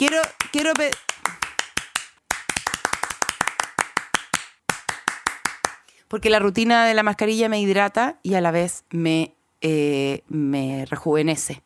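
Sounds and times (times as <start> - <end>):
speech: 0.0 - 1.1, 6.1 - 11.6
hand clapping: 0.0 - 5.9.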